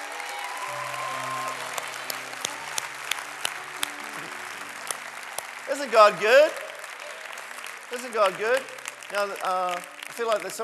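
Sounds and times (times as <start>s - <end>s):
audience clapping: 0.0s - 10.6s
speech: 5.7s - 6.6s, 7.9s - 10.6s.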